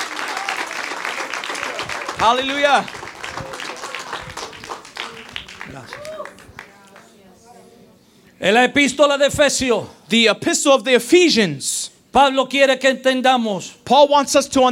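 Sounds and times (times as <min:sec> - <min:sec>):
audience applause: 0:00.0 - 0:07.1
voices calling out: 0:00.2 - 0:07.1
speech: 0:02.2 - 0:03.0, 0:08.4 - 0:14.7.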